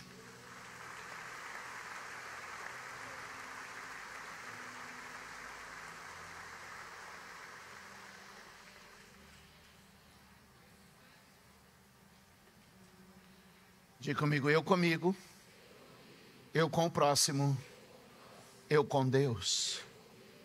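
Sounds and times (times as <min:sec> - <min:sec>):
audience applauding: 0:00.0 - 0:09.2
speech: 0:14.0 - 0:15.3, 0:16.5 - 0:17.7, 0:18.7 - 0:19.9.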